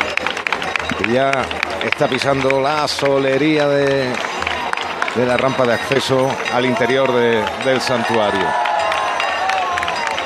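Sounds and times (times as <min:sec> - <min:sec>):
scattered claps: 0:00.0 - 0:10.2
speech: 0:01.0 - 0:04.3, 0:05.2 - 0:08.7
crowd shouting as ox cart halts: 0:03.2 - 0:10.2.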